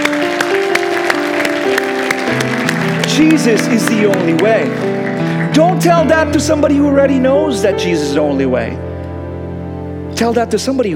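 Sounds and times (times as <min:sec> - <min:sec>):
crowd clapping hands in a steady rhythm: 0:00.0 - 0:06.6
keyboard or organ music: 0:00.0 - 0:10.9
speech: 0:03.2 - 0:05.0, 0:05.6 - 0:08.9, 0:10.2 - 0:10.9.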